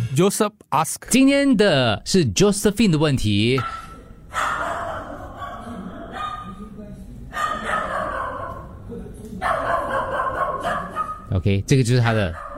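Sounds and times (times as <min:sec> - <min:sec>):
speech: 0:00.2 - 0:04.4, 0:11.4 - 0:12.4
neighbor's dog barking: 0:03.6 - 0:06.7, 0:07.3 - 0:08.8, 0:09.4 - 0:11.3, 0:12.2 - 0:12.5.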